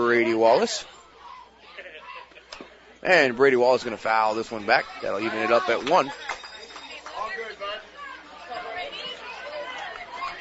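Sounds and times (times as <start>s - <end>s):
ballpark crowd chatter in the stands: 0.0s - 10.3s
speech: 0.1s - 1.0s, 3.0s - 6.3s.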